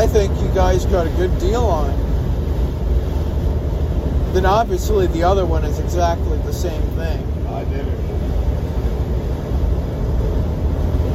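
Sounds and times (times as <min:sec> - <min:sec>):
Detroit diesel truck engine running: 0:00.0 - 0:11.1
speech: 0:00.1 - 0:02.1, 0:04.4 - 0:08.0.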